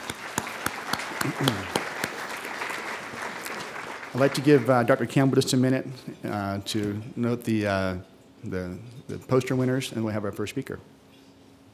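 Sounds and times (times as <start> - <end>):
audience applause: 0.0 - 5.0
speech: 1.2 - 1.8, 4.2 - 10.9.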